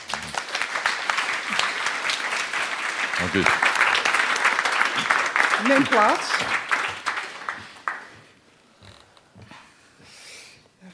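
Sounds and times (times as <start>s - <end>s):
warm audience applause: 0.0s - 8.3s
speech: 3.2s - 3.7s, 5.0s - 6.6s.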